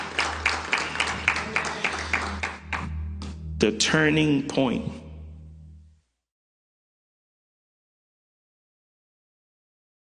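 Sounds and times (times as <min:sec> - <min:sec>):
audience applause: 0:00.0 - 0:02.9
speech: 0:03.6 - 0:05.0.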